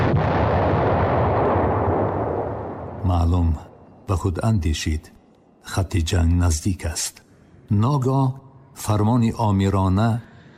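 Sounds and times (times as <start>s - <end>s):
bomb explosions: 0.0s - 4.3s
speech: 3.0s - 10.3s.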